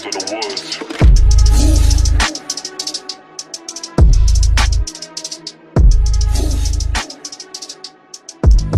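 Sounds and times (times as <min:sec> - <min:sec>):
slowed bass-boosted music: 0:01.0 - 0:02.5, 0:04.0 - 0:05.0, 0:05.8 - 0:07.2, 0:08.5 - 0:08.7.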